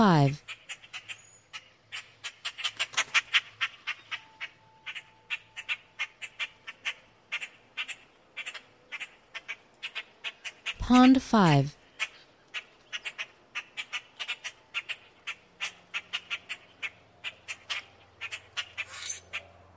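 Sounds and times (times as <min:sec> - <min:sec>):
speech: 0:00.0 - 0:00.6, 0:10.9 - 0:11.8
low hum: 0:00.0 - 0:19.7
grackle chack calls: 0:00.2 - 0:10.8, 0:11.8 - 0:19.6.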